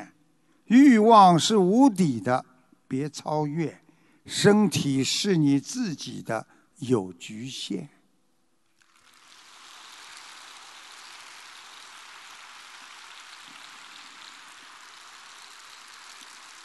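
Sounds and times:
speech: 0:00.7 - 0:08.0
audience applause: 0:08.9 - 0:16.6.

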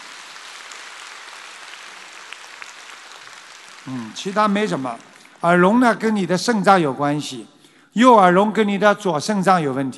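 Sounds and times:
applause: 0:00.0 - 0:06.1
speech: 0:03.8 - 0:09.9.

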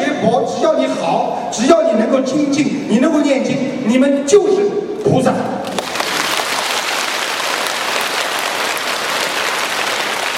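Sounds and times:
speech: 0:00.2 - 0:05.8
audience applause: 0:05.7 - 0:10.3.

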